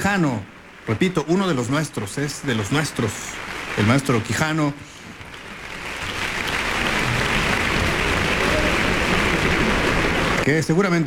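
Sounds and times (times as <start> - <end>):
speech: 0.0 - 5.0, 10.4 - 11.0
concert hall audience at the Centro Cultural Tlacná applauding the maestro: 2.4 - 10.5.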